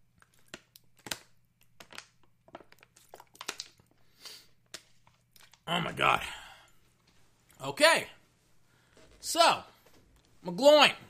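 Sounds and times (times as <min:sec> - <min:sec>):
plastic water bottle crinkling as it is squeezed and handled: 0:00.2 - 0:05.7
speech: 0:05.7 - 0:06.4, 0:07.6 - 0:08.2, 0:09.2 - 0:09.7, 0:10.4 - 0:11.0.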